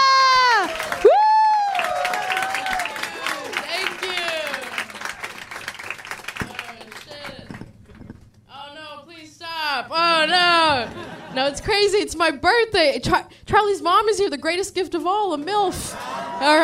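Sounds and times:
whooping shouts: 0.0 - 4.8
crowd applauding: 0.0 - 7.7
laughter: 10.5 - 11.9, 15.8 - 16.6
speech: 11.5 - 16.6.

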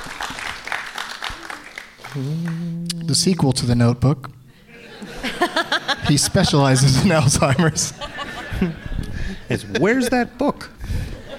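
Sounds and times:
small audience applause: 0.0 - 2.7
speech: 2.1 - 4.4, 5.4 - 8.9, 9.5 - 10.8
laughter: 4.6 - 10.1, 11.0 - 11.3.

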